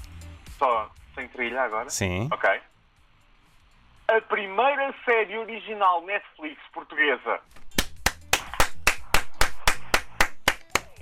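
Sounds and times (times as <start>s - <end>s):
speech: 0.6s - 2.7s, 4.1s - 7.6s
one person clapping: 7.7s - 11.0s.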